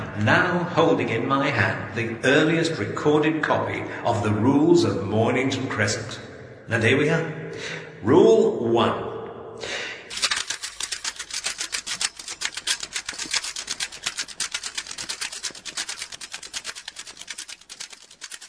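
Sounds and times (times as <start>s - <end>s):
speech: 0.2s - 9.7s
tape running off the end of a spool on a reel: 10.1s - 18.4s.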